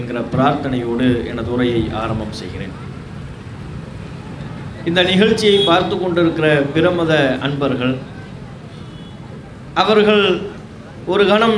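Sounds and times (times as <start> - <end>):
speech: 0.0 - 2.9, 4.8 - 8.1, 9.8 - 10.5, 11.1 - 11.5
intermittent rain falling: 0.0 - 5.2.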